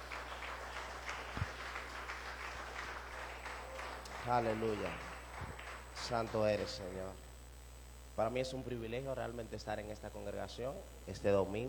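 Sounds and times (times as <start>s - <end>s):
audience applause: 0.0s - 7.0s
low constant hum: 0.0s - 11.6s
speech: 4.2s - 5.1s, 6.1s - 7.2s, 8.2s - 11.6s.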